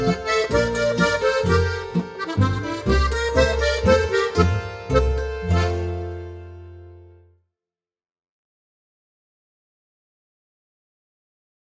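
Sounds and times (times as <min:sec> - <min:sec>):
Bavarian folk dance music: 0:00.0 - 0:07.1.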